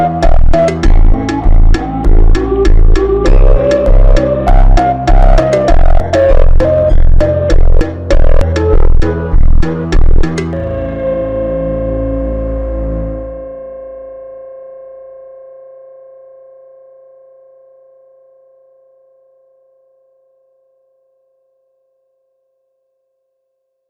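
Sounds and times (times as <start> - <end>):
super slowed funk music: 0.0 - 13.8.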